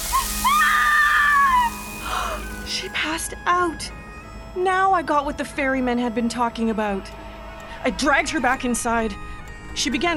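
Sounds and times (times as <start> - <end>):
skin sizzling: 0.0 - 3.2
speech: 3.1 - 7.2, 7.8 - 10.1.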